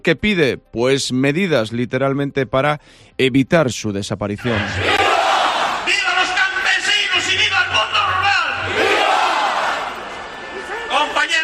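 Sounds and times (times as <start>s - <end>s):
speech: 0.0s - 5.0s
crowd of farmers and ranchers from Cantabria shouting and chanting in Madrid: 4.4s - 11.4s.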